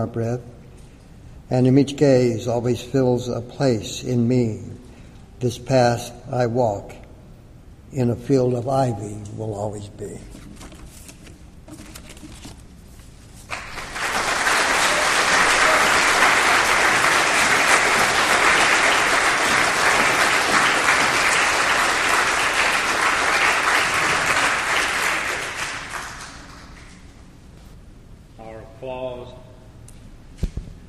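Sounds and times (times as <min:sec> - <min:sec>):
speech: 0:00.0 - 0:00.6, 0:01.5 - 0:04.8, 0:05.4 - 0:07.0, 0:07.9 - 0:10.6
audience applause: 0:13.5 - 0:27.0.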